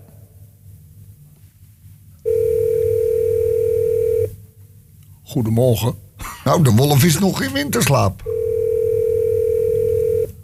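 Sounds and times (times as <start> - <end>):
phone line tone: 2.3 - 4.4, 8.3 - 10.4
speech: 5.3 - 8.3.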